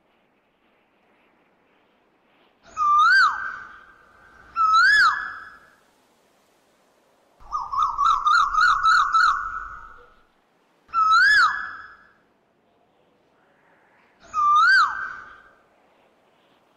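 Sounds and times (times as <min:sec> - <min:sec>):
Asian koel swooping and rising-falling whistled calls: 0:02.7 - 0:05.8, 0:07.4 - 0:10.2, 0:10.9 - 0:12.2, 0:14.2 - 0:15.6.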